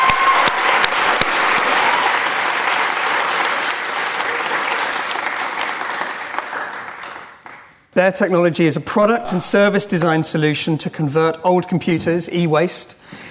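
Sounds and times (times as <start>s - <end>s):
audience applause: 0.0s - 7.9s
speech: 8.0s - 13.1s.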